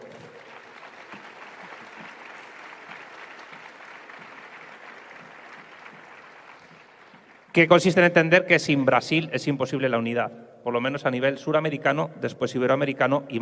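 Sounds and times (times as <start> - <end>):
audience applause: 0.0 - 7.6
speech: 7.6 - 13.4.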